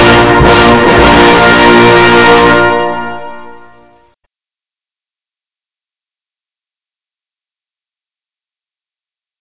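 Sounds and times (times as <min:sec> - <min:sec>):
national anthem music: 0:00.0 - 0:04.0.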